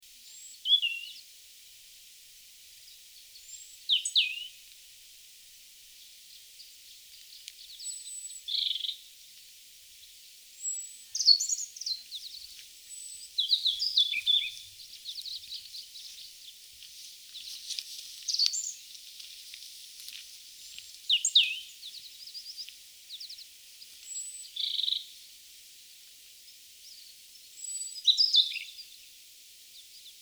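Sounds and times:
European robin song: 0.2s - 1.3s, 3.3s - 4.6s, 6.3s - 9.1s, 10.6s - 19.0s, 20.9s - 25.2s, 26.8s - 29.0s.

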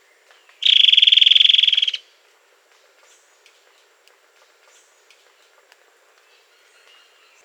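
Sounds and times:
bird buzzy trill: 0.6s - 2.0s.

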